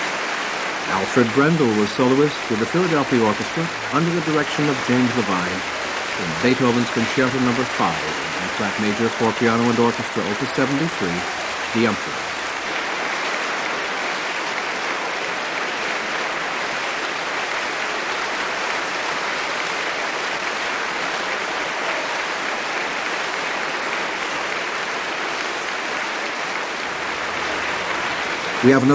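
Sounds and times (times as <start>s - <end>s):
concert audience applause after piano concerto: 0.0s - 28.9s
speech: 0.9s - 12.3s, 28.6s - 28.9s.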